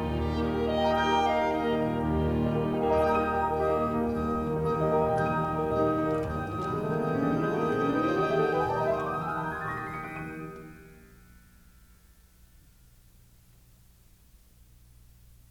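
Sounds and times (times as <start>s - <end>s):
piano concerto with orchestra in E-flat major: 0.0s - 11.1s.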